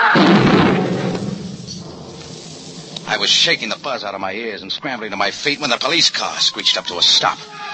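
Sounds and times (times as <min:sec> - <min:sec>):
car bomb explosion: 0:00.0 - 0:04.4
speech: 0:03.1 - 0:07.7.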